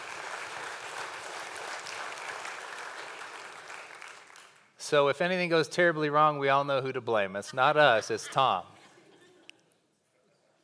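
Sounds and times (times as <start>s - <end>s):
audience round of applause: 0.0s - 4.8s
speech: 4.8s - 8.7s.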